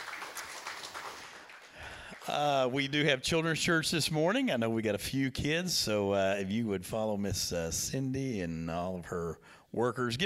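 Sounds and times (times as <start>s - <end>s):
audience clapping: 0.0s - 2.9s
speech: 2.3s - 10.2s.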